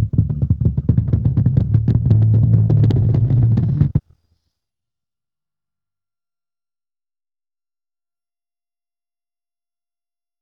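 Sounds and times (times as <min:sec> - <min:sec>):
bass: 0:00.0 - 0:04.1.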